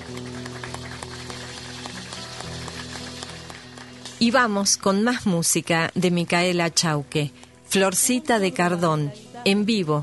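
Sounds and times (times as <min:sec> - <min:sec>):
audience clapping: 0:00.0 - 0:05.1
speech: 0:04.2 - 0:10.0.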